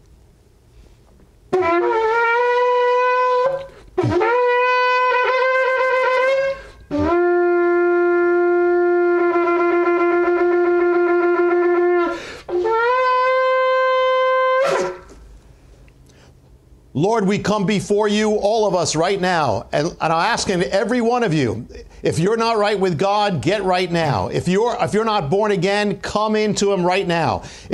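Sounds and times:
shofar blowing brassy blasts: 1.5 - 15.2
speech: 17.2 - 27.7.

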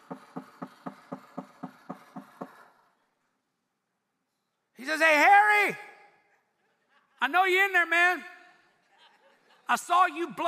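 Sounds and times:
heavy thuds pounding on a door: 0.0 - 2.6
speech: 4.9 - 5.9, 7.2 - 8.3, 9.7 - 10.4
laughter: 6.3 - 7.4, 8.5 - 9.9.

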